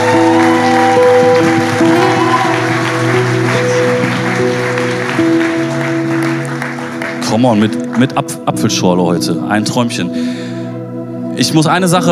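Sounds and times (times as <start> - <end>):
audience applause: 0.0 - 8.2
sustained tonal music with low held notes: 0.0 - 12.1
speech: 7.4 - 10.4, 11.4 - 12.1.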